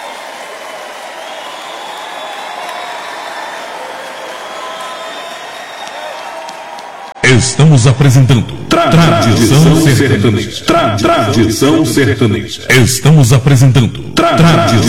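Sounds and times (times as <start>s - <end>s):
audience applause at a sertanejo country music show: 0.0s - 7.2s
speech: 7.3s - 14.8s.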